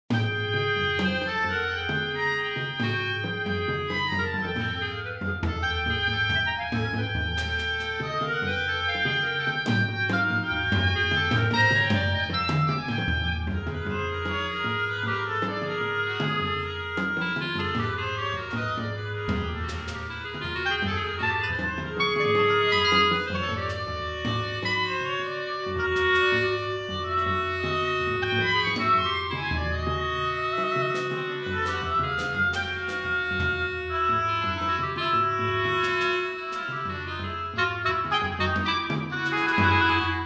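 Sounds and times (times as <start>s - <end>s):
percussion: 0.0s - 40.2s
clarinet: 0.1s - 40.2s
oboe: 0.1s - 40.2s.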